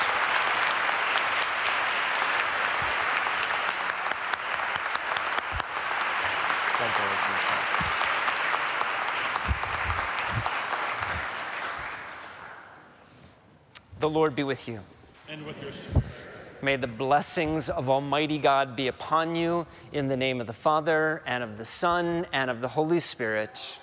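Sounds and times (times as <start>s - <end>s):
audience applause: 0.0s - 13.0s
speech: 6.9s - 7.7s, 14.0s - 23.8s.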